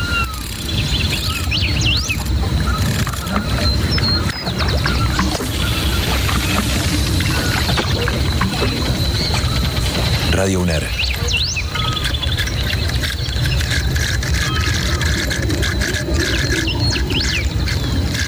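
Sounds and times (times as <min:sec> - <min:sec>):
birds chirping: 0:00.0 - 0:18.2
river water flowing: 0:04.6 - 0:10.2
speech: 0:10.4 - 0:11.0.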